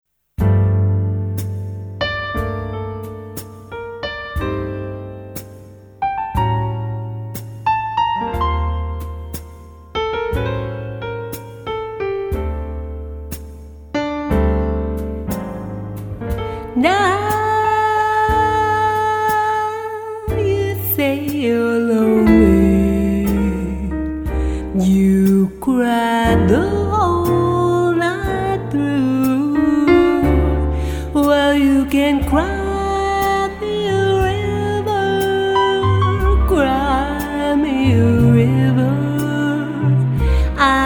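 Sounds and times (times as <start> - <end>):
jazzy torch song: 0.4 - 40.8.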